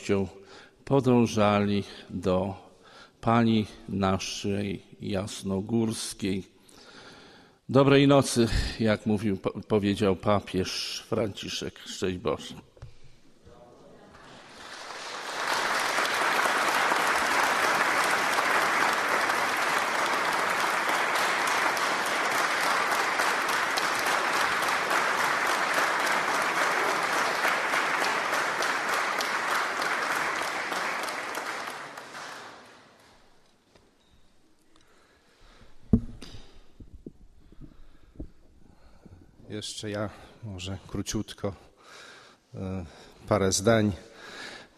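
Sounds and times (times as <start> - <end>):
speech: 0.0 - 2.6, 3.2 - 6.5, 7.7 - 12.7, 39.8 - 41.7, 42.5 - 44.4
loud applause: 14.1 - 33.2.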